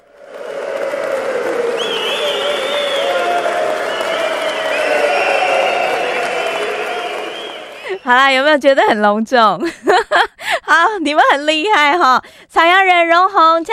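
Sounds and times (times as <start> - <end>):
crowd cheers and whoops: 0.0 - 8.0
large crowd applauding: 0.0 - 8.2
speech: 8.1 - 13.7.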